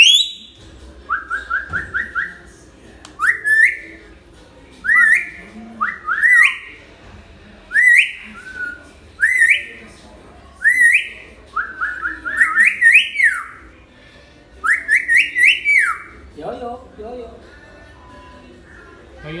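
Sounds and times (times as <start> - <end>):
hill myna singing: 0.0 - 2.4, 3.2 - 4.0, 4.8 - 6.8, 7.7 - 9.8, 10.6 - 13.6, 14.6 - 16.2.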